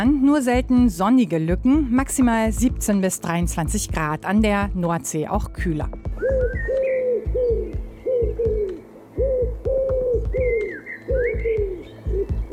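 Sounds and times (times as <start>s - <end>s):
speech: 0.0s - 6.8s
pigeon cooing: 6.2s - 12.5s.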